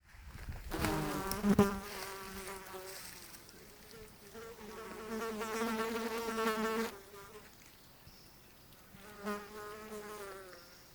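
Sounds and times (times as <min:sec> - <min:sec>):
fly wing buzzing: 0:00.7 - 0:07.5, 0:09.0 - 0:10.7.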